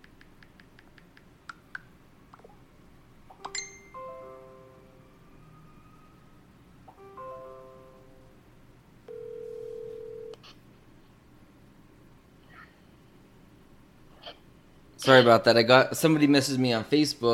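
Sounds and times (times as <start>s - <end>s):
phone line beeping: 9.1s - 10.4s
speech: 15.1s - 17.3s.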